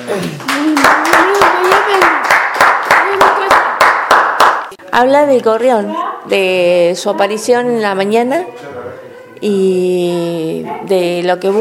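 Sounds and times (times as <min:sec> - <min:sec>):
speech: 0:00.1 - 0:01.5, 0:05.0 - 0:08.7, 0:09.4 - 0:11.6
rhythmic clapping: 0:00.2 - 0:04.8.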